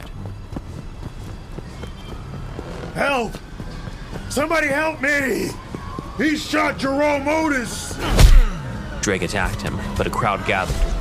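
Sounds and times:
running footsteps: 0.0 - 8.0
speech: 3.0 - 3.5, 4.3 - 8.2, 9.0 - 11.0.

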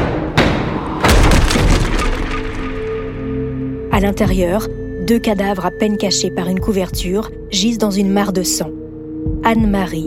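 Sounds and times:
front door being broken down: 0.0 - 3.0
splintering and rattling debris: 1.1 - 3.1
speech: 4.0 - 8.8, 9.4 - 10.0.

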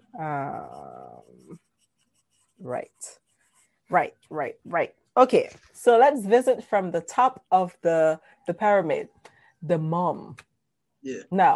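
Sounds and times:
speech: 0.1 - 1.6, 2.6 - 3.2, 3.9 - 11.5
pen writing notes: 0.4 - 4.2.

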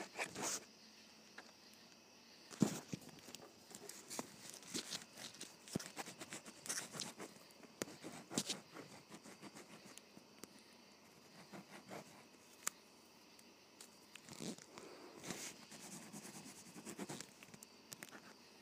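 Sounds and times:
faint steady hiss: 0.0 - 18.6
ballpoint pen writing across paper: 5.7 - 10.0, 11.1 - 12.3, 15.2 - 17.4.

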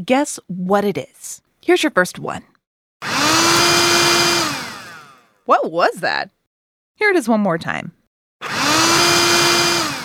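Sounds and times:
speech: 0.0 - 3.1, 5.5 - 6.4, 7.0 - 8.0
robotic vacuum cleaner running: 3.0 - 5.2, 8.4 - 10.0.

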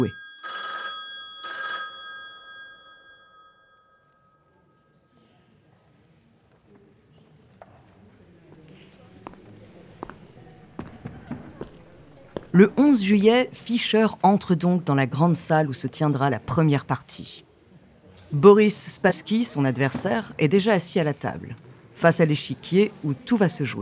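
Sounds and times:
speech: 0.0 - 0.2, 12.6 - 17.5, 18.3 - 23.8
telephone ringing: 0.0 - 4.3.

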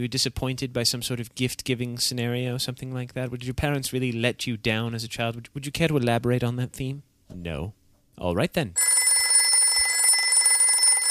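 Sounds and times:
speech: 0.0 - 9.0
telephone ringing: 8.8 - 11.0.

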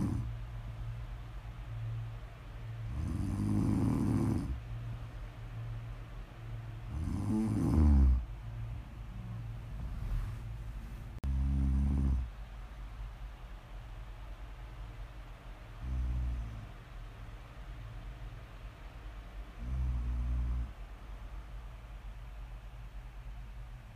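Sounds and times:
snoring: 0.0 - 0.3, 2.9 - 4.6, 6.9 - 8.3, 11.2 - 12.3, 15.8 - 16.8, 19.6 - 20.8
low hum: 0.0 - 23.9.

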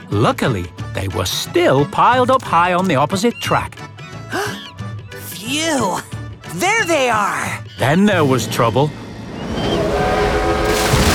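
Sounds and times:
speech: 0.1 - 3.8, 5.5 - 9.0
super-fast engine speeding past, squashing coconuts: 8.4 - 11.1.

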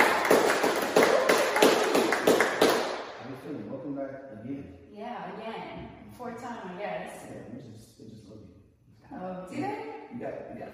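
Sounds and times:
crowd clapping: 0.0 - 3.2.

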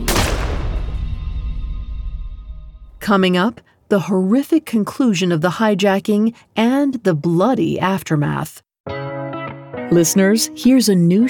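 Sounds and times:
pistol gunshot: 0.0 - 1.4
speech: 3.1 - 8.6, 9.9 - 11.2.

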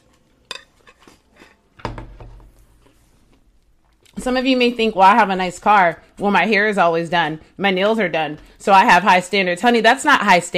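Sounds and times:
cutlery on a dish while eating breakfast: 0.4 - 1.6
speech: 4.2 - 10.5.

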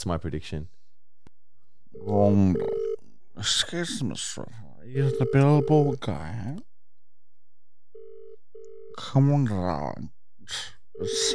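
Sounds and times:
speech: 0.0 - 0.8, 2.0 - 2.8, 3.4 - 6.7, 9.0 - 11.3
telephone call ringing unanswered: 2.0 - 3.0, 5.0 - 6.0, 8.0 - 9.1, 11.0 - 11.3.

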